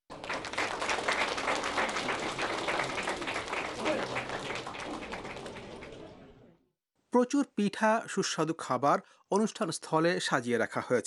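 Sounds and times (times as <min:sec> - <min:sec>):
audience applause after a Bengali cultural performance at a Bengali New Year celebration: 0:00.1 - 0:06.4
speech: 0:07.1 - 0:11.0.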